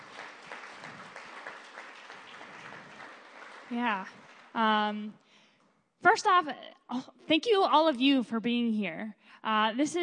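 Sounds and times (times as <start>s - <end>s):
audience applause: 0.0s - 4.6s
speech: 3.7s - 5.2s, 6.0s - 10.0s.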